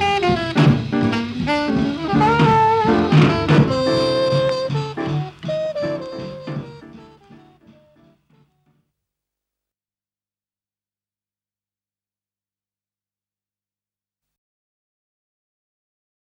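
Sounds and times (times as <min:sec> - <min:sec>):
jazz alto saxophone break: 0:00.0 - 0:08.6.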